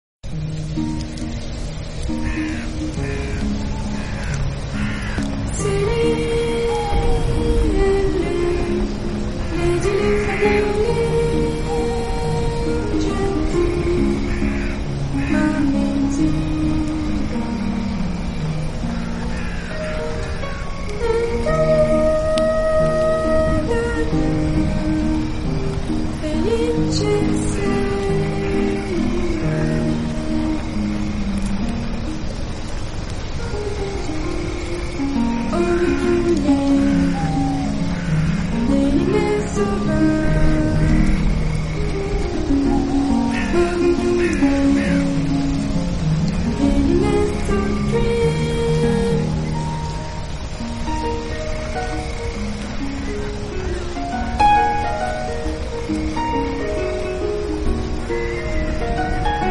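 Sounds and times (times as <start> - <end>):
relaxing music: 0.2 - 59.5.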